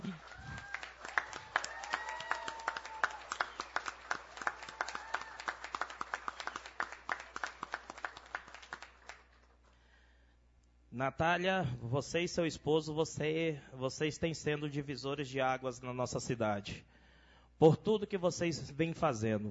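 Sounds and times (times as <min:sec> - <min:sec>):
audience applause: 0:00.0 - 0:09.3
speech: 0:11.0 - 0:16.9, 0:17.6 - 0:19.5.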